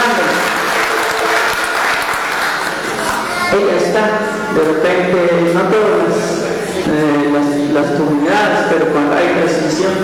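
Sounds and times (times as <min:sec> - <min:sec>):
crowd applauding: 0:00.0 - 0:03.6
speech: 0:03.6 - 0:10.0.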